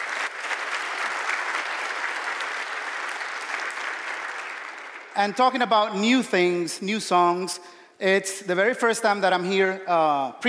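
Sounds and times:
audience applause: 0.0 - 5.2
speech: 5.2 - 10.4.

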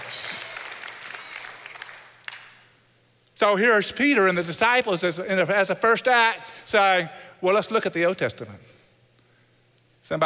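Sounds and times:
audience clapping: 0.0 - 2.7
speech: 3.4 - 8.6, 10.1 - 10.2.

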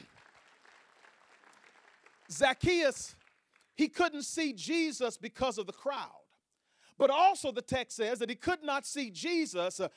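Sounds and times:
audience applause: 0.0 - 3.4
speech: 2.3 - 3.2, 3.8 - 6.2, 7.0 - 9.9.

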